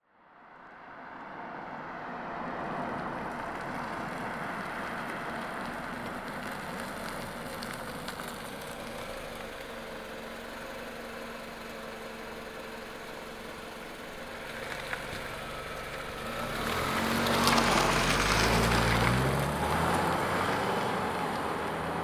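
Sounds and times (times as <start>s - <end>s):
Camry car idling and driving away: 0.4s - 22.0s.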